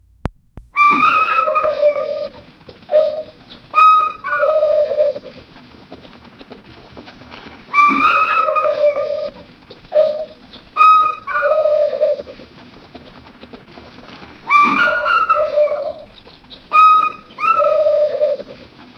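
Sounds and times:
two animals trotting with clip-clopping hooves: 0.2 - 18.9.

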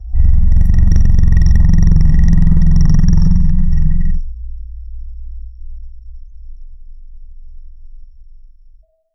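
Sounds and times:
ancient prehistoric bird call: 0.2 - 4.2.

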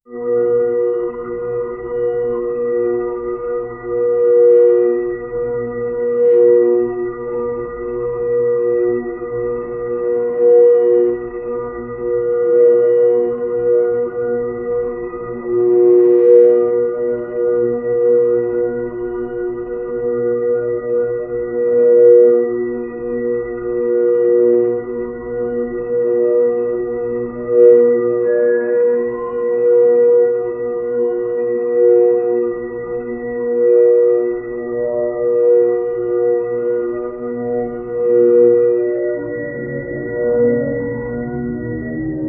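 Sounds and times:
ambient drone: 0.1 - 42.2
slow horror hospital alarm: 0.1 - 42.2.

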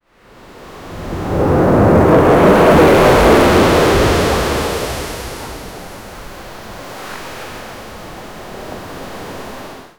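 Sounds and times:
tsunami waves in the ocean: 0.4 - 8.2.

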